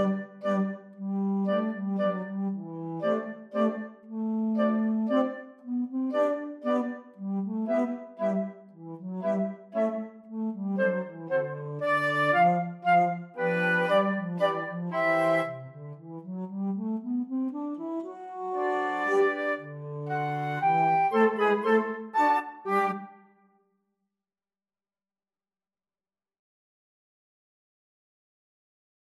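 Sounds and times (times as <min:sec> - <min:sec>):
flute: 0:00.0 - 0:16.2, 0:16.8 - 0:23.4.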